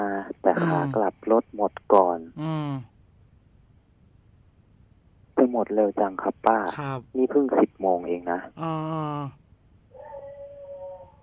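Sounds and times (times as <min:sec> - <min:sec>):
speech: 0:00.3 - 0:02.9, 0:05.5 - 0:09.4
dogs barking and howling: 0:09.9 - 0:11.2.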